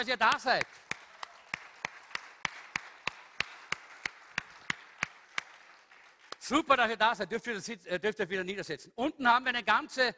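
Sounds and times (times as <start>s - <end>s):
speech: 0.0s - 0.8s, 6.5s - 10.1s
audience clapping in steady unison: 0.0s - 7.1s.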